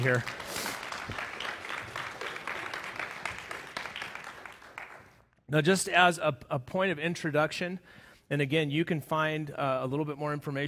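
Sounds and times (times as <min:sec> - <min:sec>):
speech: 0:00.0 - 0:00.4, 0:05.5 - 0:10.6
audience cheering: 0:00.0 - 0:04.9.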